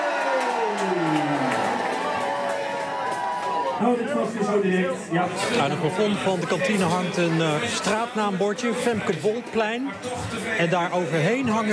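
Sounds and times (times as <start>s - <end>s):
rising and falling whoops: 0.0s - 3.8s
group of people cheering: 0.0s - 4.0s
speech: 3.8s - 11.7s.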